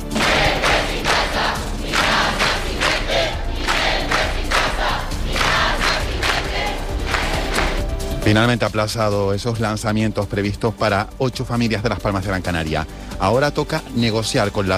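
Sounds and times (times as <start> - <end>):
street protest crowd chanting: 0.0 - 7.9
speech: 8.3 - 14.7.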